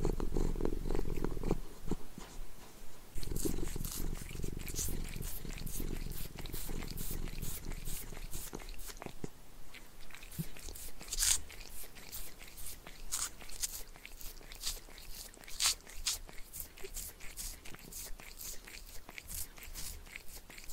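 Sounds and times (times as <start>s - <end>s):
cat purring: 0.0s - 2.3s, 3.2s - 20.7s.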